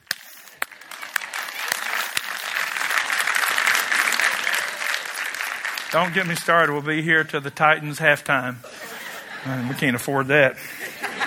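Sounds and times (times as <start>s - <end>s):
audience clapping: 0.0s - 7.0s
laughter: 0.7s - 5.3s, 8.4s - 11.2s
speech: 5.9s - 8.7s, 9.4s - 10.9s.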